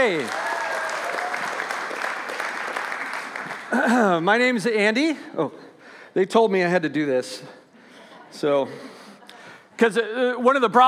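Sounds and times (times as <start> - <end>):
speech: 0.0 - 0.5, 3.7 - 7.6, 8.3 - 9.0, 9.8 - 10.8
audience applause: 0.0 - 4.2.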